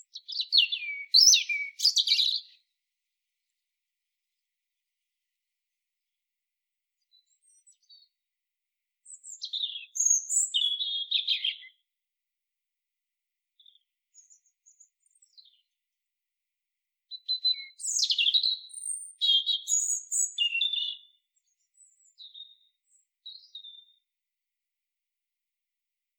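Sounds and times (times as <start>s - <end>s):
European robin song: 0.0s - 2.6s, 9.0s - 11.8s, 17.1s - 21.2s.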